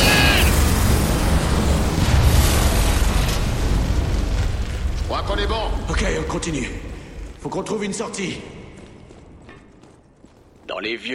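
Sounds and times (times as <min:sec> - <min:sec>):
building explosion in film scene: 0:00.0 - 0:07.4
speech: 0:06.0 - 0:08.6, 0:10.7 - 0:11.1.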